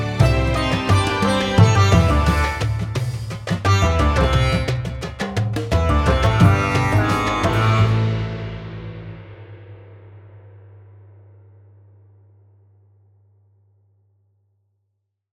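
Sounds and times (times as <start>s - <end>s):
sitar: 0.0s - 5.2s, 5.8s - 9.0s.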